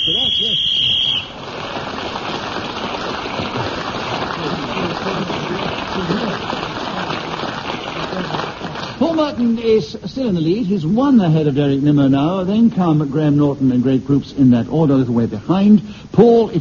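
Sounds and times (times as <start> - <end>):
whistle blown: 0.0 - 1.4
laughter: 3.2 - 9.4
speech: 9.3 - 16.5.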